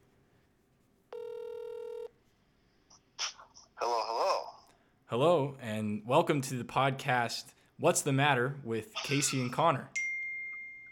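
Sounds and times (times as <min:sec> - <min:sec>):
electronic telephone tone while a caller is dialed: 0:01.1 - 0:02.2
speech: 0:05.1 - 0:10.0.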